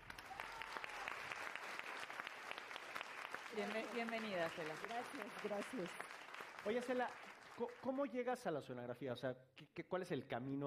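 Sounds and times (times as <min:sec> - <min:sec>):
audience applause: 0:00.0 - 0:08.1
speech: 0:03.6 - 0:10.6.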